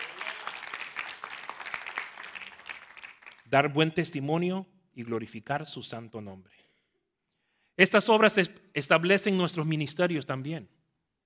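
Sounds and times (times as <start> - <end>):
loud applause from audience: 0.0 - 3.5
speech: 3.5 - 6.6, 7.8 - 10.8.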